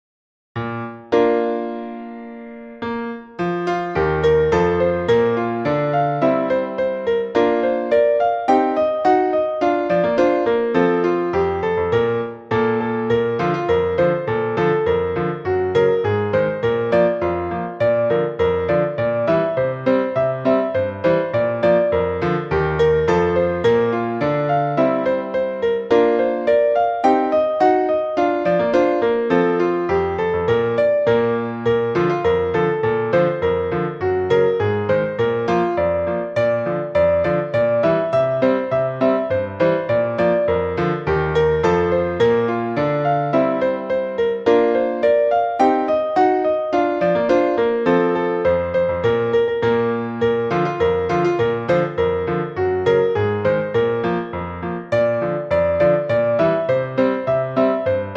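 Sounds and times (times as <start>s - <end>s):
piano: 0.6s - 58.1s.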